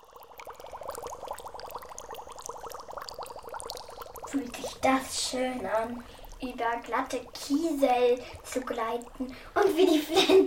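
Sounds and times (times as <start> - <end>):
small spring water bubbling: 0.0 - 10.4
speech: 4.3 - 10.4.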